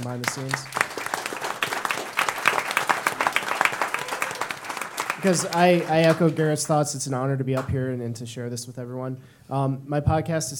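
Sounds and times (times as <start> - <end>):
speech: 0.0 - 0.8, 5.2 - 10.5
audience applause: 0.0 - 6.6.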